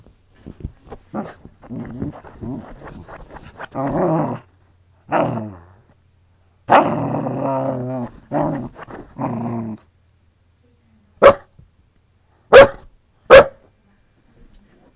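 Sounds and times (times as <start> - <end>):
dog growling while digging at a sofa: 1.1 - 6.0, 6.7 - 9.9
dog barking: 11.2 - 11.5, 12.5 - 13.7.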